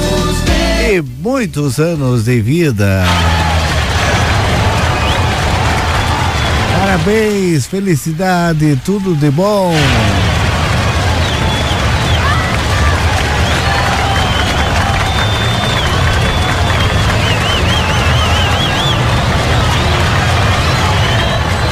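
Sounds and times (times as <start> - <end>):
speech: 0.9 - 3.5, 6.9 - 10.2
high wavering whistle-like tones: 3.0 - 3.6, 4.7 - 7.4, 11.1 - 21.7
crowd applauding and cheering for a birthday: 3.0 - 21.7.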